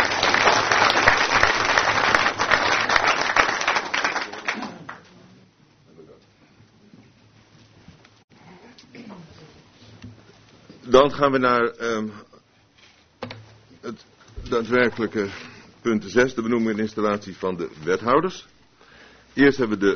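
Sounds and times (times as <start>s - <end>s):
room full of people clapping in council meeting: 0.0s - 5.4s
speech: 11.0s - 12.3s, 14.5s - 18.5s, 19.4s - 19.9s.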